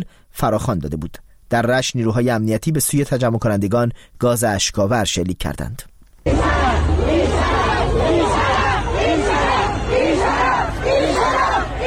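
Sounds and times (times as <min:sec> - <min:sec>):
speech: 0:00.0 - 0:08.4
protest crowd chanting slogans: 0:06.2 - 0:11.8.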